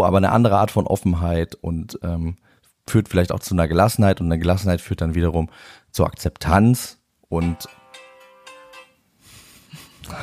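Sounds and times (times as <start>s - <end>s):
speech: 0.0s - 7.8s, 10.0s - 10.2s
phone alarm ringing: 7.4s - 9.0s.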